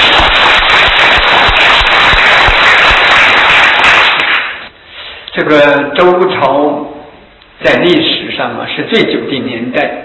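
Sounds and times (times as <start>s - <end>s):
audience applause: 0.0s - 4.6s
speech: 5.4s - 6.9s, 7.6s - 10.0s.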